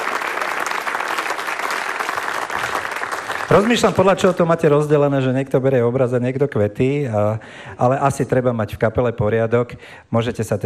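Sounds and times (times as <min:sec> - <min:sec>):
audience applause for award winners: 0:00.0 - 0:04.3
speech: 0:03.5 - 0:10.6.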